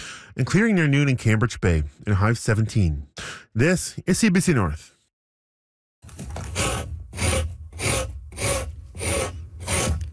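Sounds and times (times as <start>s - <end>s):
speech: 0.4s - 5.0s
tool scraping a moose hide: 6.1s - 10.1s.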